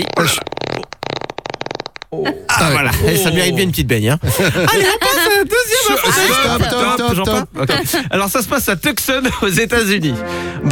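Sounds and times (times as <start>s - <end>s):
speech: 0.0s - 0.5s, 2.1s - 10.7s
fart sound effect: 0.0s - 2.6s
laughter: 2.2s - 8.6s.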